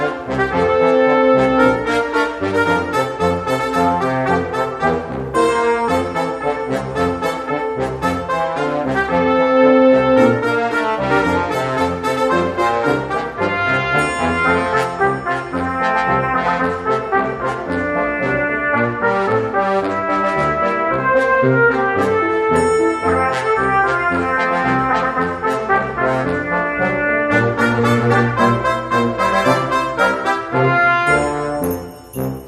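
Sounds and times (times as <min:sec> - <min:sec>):
brassy instrumental music: 0:00.0 - 0:32.4.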